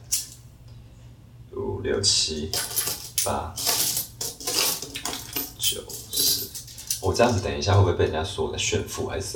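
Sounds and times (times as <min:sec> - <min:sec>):
speech: 0:01.8 - 0:03.7, 0:07.0 - 0:09.3
coins from a piggy bank being counted: 0:02.5 - 0:07.4.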